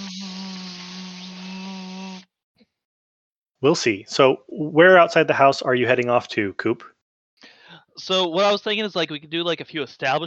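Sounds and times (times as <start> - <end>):
cicadas buzzing: 0.0 - 2.3
speech: 3.6 - 6.9, 8.0 - 10.2.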